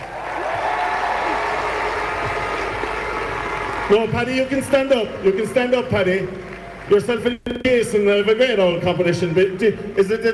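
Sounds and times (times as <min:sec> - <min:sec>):
round of applause: 0:00.0 - 0:07.2
speech: 0:03.9 - 0:10.3.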